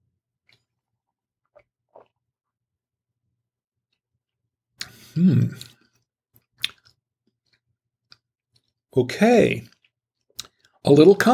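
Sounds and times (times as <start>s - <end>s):
person sipping and slurping peach-scented wine: 1.4s - 2.3s
speech: 5.2s - 5.7s, 9.0s - 9.7s, 10.8s - 11.3s.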